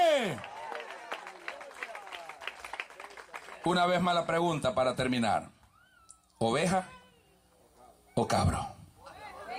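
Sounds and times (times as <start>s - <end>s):
audience applauding: 0.2s - 4.0s
speech: 3.6s - 5.6s, 6.4s - 7.0s, 8.2s - 8.6s.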